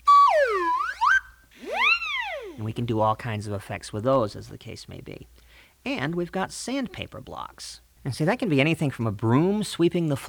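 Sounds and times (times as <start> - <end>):
sound-effect prop whistles: 0.0 - 2.7
speech: 2.6 - 10.2.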